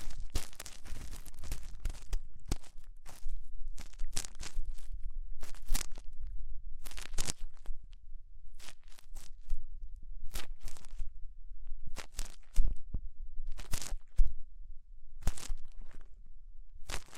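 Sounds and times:
ear cleaning scratchy crinkling bursts with rhinestone and clay: 0:00.0 - 0:07.8, 0:08.6 - 0:09.6, 0:10.3 - 0:11.1, 0:11.9 - 0:12.8, 0:13.5 - 0:14.3, 0:15.2 - 0:16.1, 0:16.8 - 0:17.1.

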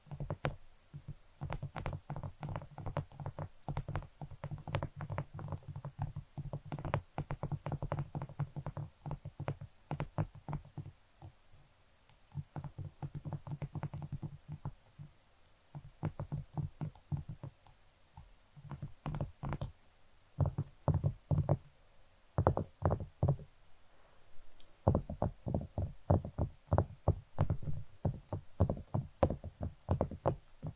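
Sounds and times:
ASMR knocking taps: 0:00.1 - 0:11.4, 0:12.3 - 0:15.1, 0:15.7 - 0:17.6, 0:20.4 - 0:21.6, 0:22.4 - 0:23.5, 0:24.8 - 0:30.7.

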